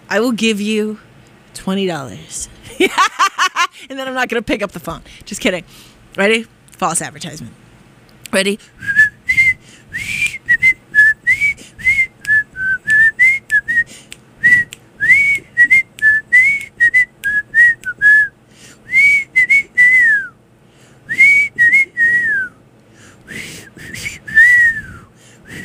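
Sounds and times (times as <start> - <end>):
speech: 0.1 - 7.6, 8.3 - 9.0
laughter: 2.7 - 3.8
person whistling a TV theme tune: 8.8 - 18.3, 18.9 - 20.3, 21.1 - 22.6, 23.3 - 25.6.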